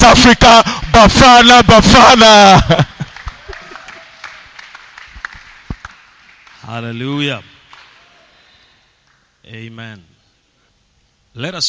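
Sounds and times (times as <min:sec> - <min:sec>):
speech: 0:00.0 - 0:02.9, 0:06.7 - 0:07.5, 0:09.5 - 0:10.1, 0:11.4 - 0:11.6
church congregation clapping to welcome a bishop: 0:00.1 - 0:08.4, 0:09.0 - 0:09.4.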